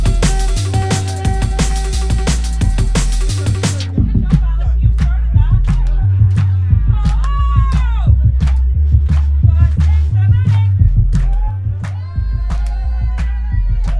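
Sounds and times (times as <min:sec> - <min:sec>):
whistles: 0:00.0 - 0:03.9
thumping bass line: 0:00.0 - 0:13.9
voices: 0:00.0 - 0:13.9
crowd clapping in rhythm: 0:00.2 - 0:13.9.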